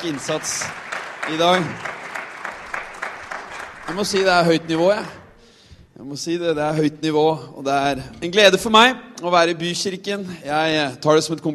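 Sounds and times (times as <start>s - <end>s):
speech: 0.0s - 1.9s, 3.9s - 5.2s, 6.0s - 11.5s
audience applause: 0.0s - 5.2s.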